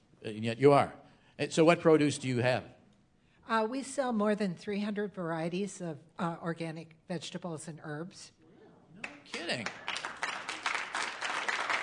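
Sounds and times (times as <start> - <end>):
speech: 0.2 - 2.8, 3.5 - 8.4, 9.3 - 9.9
audience applause: 9.0 - 11.8.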